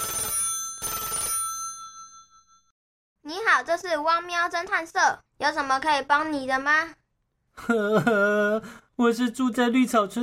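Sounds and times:
telephone ringing: 0.0s - 2.7s
speech: 3.4s - 7.0s, 7.6s - 10.2s.

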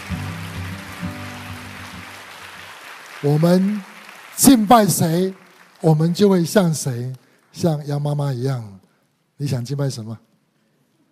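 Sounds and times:
warm audience applause: 0.0s - 7.6s
speech: 3.2s - 8.8s, 9.4s - 10.3s.

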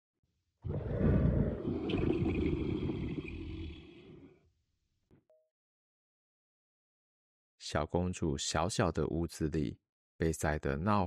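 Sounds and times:
tiger roar: 0.6s - 4.4s
speech: 7.7s - 11.0s.

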